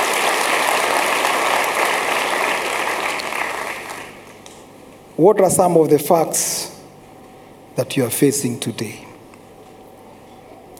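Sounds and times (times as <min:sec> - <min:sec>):
crowd clapping: 0:00.0 - 0:04.4
speech: 0:05.2 - 0:06.7, 0:07.8 - 0:09.1.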